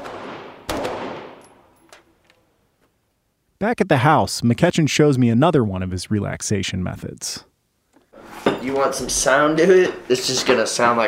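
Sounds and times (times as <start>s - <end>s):
gunfire from a firearm as magazines are shot off: 0.0s - 1.6s
speech: 3.6s - 7.5s, 8.6s - 11.0s.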